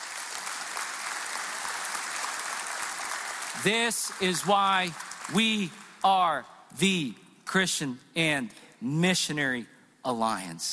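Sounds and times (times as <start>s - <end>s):
audience clapping: 0.0s - 6.4s
speech: 3.6s - 10.7s.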